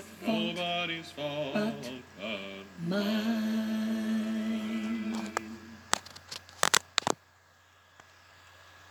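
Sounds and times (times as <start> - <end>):
alto voice singing: 0.0 - 6.0.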